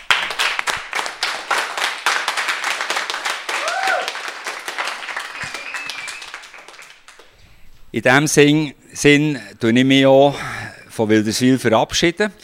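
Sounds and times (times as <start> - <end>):
audience applause: 0.0 - 7.3
speech: 8.0 - 12.4.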